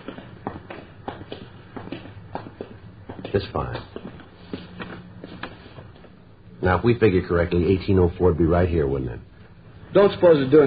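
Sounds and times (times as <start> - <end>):
footsteps walking down a street: 0.0 - 6.3
speech: 3.3 - 4.0, 6.6 - 9.3, 10.0 - 10.6.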